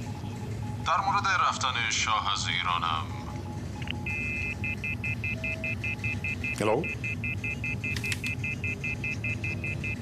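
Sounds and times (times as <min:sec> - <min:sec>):
hum: 0:00.0 - 0:09.9
speech: 0:00.8 - 0:03.2, 0:06.6 - 0:07.1
telephone disconnect beeps: 0:05.2 - 0:09.9.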